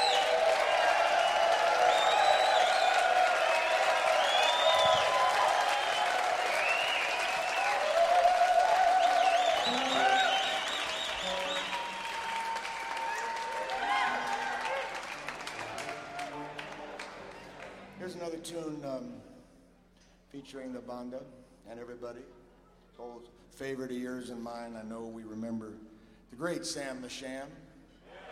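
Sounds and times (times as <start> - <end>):
crowd applauding: 0.0 - 18.0
speech: 20.7 - 22.4, 23.0 - 27.6.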